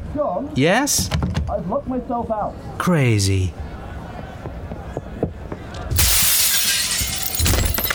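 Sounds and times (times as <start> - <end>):
speech: 0.2 - 3.6
tinkling glass debris: 6.0 - 7.9
window glass shattering as someone climbs through: 6.0 - 7.9.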